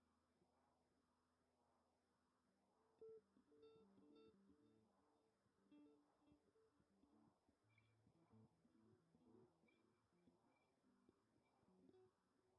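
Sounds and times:
lead guitars: 3.0 - 4.9, 5.6 - 12.1.

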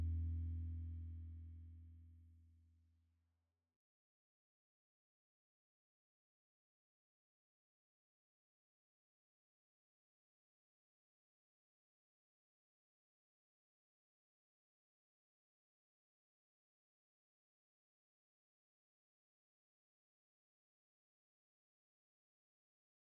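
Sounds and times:
bass: 0.0 - 3.1.

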